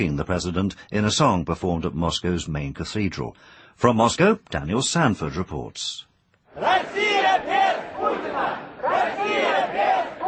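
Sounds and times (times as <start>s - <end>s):
speech: 0.0s - 7.6s
protest crowd chanting anti-Putin slogans: 6.5s - 10.2s.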